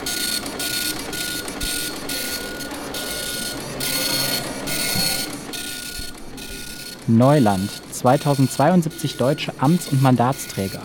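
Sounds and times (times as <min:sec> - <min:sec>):
Epson LQ 2190 printer printing tweets on continuous paper: 0:00.0 - 0:10.8
speech: 0:07.1 - 0:10.8.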